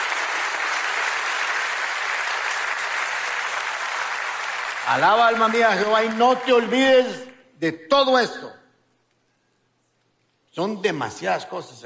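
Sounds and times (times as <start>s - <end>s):
audience applauding: 0.0s - 7.2s
speech: 4.9s - 8.6s, 10.6s - 11.8s.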